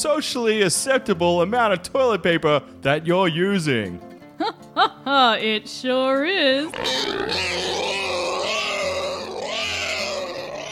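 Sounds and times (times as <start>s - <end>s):
speech: 0.0s - 7.8s
pig grunting: 6.7s - 10.7s.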